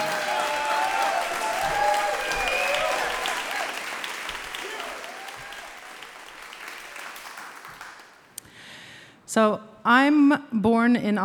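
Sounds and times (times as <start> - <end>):
audience applause: 0.0 - 8.3
speech: 9.3 - 11.2.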